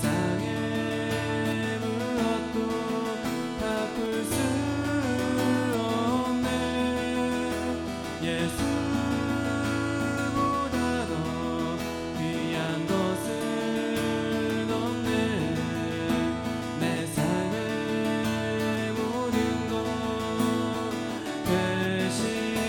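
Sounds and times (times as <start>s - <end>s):
worship guitar: 0.0s - 22.6s.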